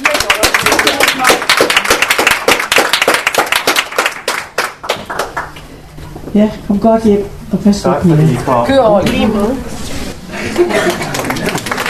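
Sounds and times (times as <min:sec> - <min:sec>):
audience applause: 0:00.0 - 0:05.6, 0:10.7 - 0:11.8
speech: 0:06.3 - 0:09.8, 0:10.5 - 0:11.2
laughter: 0:10.3 - 0:11.8.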